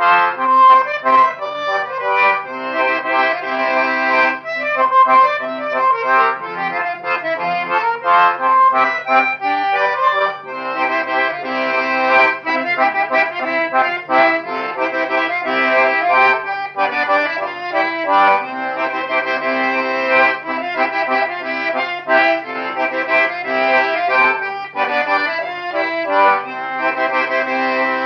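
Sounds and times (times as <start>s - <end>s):
old folk waltz played on loots accordion: 0.0s - 28.0s.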